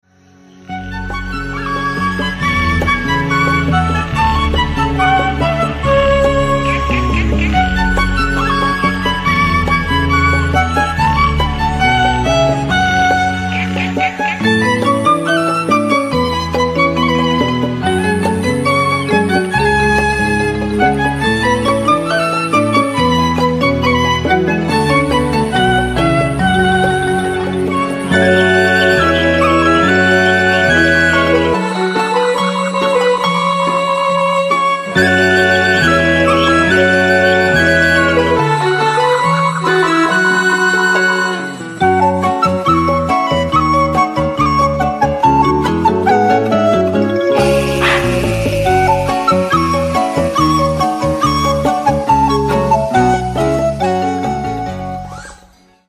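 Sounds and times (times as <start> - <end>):
jungle music: 0.5 - 55.6.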